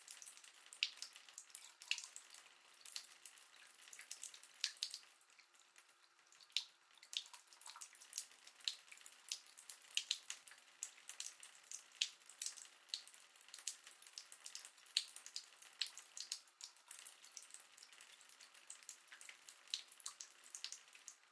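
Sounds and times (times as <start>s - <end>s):
household bathtub filling up with water: 0.0s - 21.3s.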